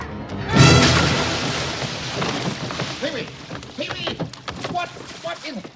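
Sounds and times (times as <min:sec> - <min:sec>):
door being broken down: 0:00.6 - 0:05.0.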